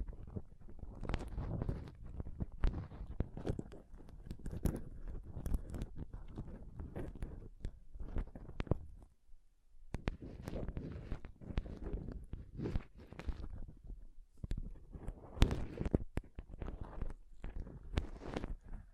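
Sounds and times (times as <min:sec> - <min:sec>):
scratching and touching on a microphone: 0:00.0 - 0:09.1, 0:09.9 - 0:18.9.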